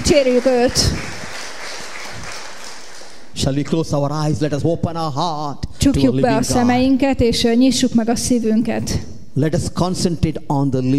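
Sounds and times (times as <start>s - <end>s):
audience clapping: 0.0s - 3.4s
speech: 0.1s - 1.1s, 3.4s - 10.9s.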